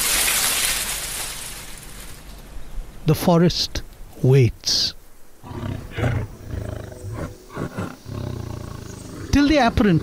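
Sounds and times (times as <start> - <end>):
speech: 3.1 - 6.2, 9.4 - 10.0
tiger growling: 5.4 - 9.8.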